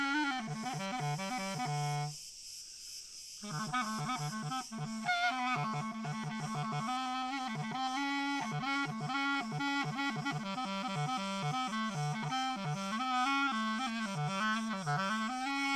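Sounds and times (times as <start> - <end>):
distant cricket chorus: 0.0 - 15.7.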